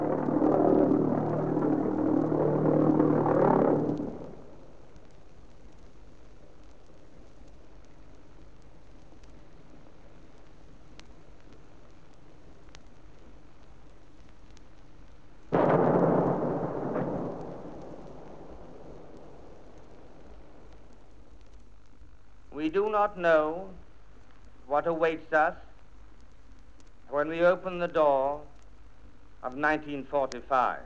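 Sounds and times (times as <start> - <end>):
V-1 flying bomb engine droning: 0.0 - 4.6
V-1 flying bomb heavy explosion: 0.0 - 4.7, 15.5 - 20.8
speech: 23.0 - 23.8, 24.7 - 25.6, 27.1 - 28.5, 29.4 - 30.8.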